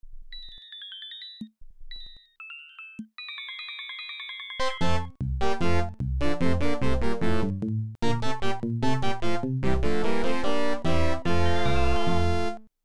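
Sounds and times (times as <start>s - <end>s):
song: 4.6s - 12.6s.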